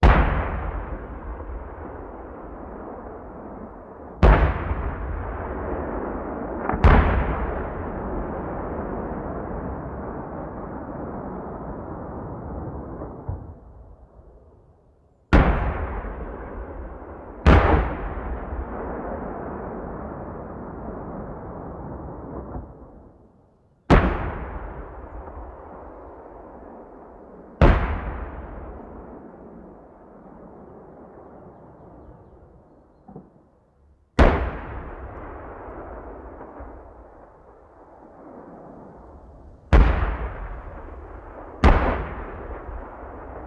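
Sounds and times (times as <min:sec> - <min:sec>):
tank cannon firing: 0:00.0 - 0:11.5, 0:15.3 - 0:22.7, 0:23.9 - 0:29.2, 0:34.2 - 0:38.4, 0:39.7 - 0:43.4.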